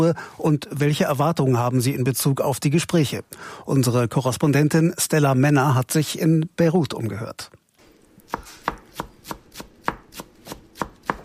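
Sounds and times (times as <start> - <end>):
speech: 0.0 - 7.6
chef's knife chopping herbs in Jacaranda restaurant kitchen in Beirut: 8.3 - 11.2.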